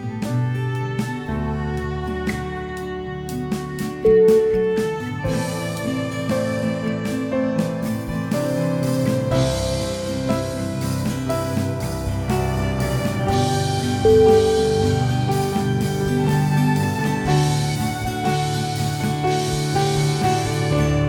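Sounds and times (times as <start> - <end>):
sad acoustic indie music: 0.0 - 21.0.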